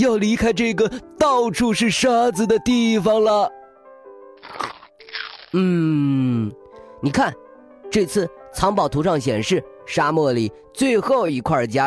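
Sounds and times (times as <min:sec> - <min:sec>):
speech: 0:00.0 - 0:03.6, 0:05.5 - 0:11.8
crunchy bites into a juicy cactus: 0:04.4 - 0:05.8.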